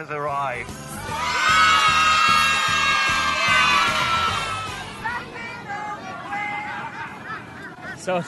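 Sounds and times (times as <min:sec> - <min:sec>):
crowd of children shouting and cheering: 0:00.8 - 0:08.2
laughter: 0:06.1 - 0:08.2.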